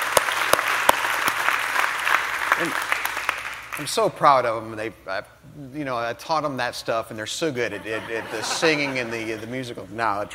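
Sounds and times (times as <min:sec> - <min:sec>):
church service audience applauding the praise and worship team: 0:00.0 - 0:04.0
speech: 0:02.6 - 0:02.9, 0:03.8 - 0:10.3
laughter: 0:07.7 - 0:09.7.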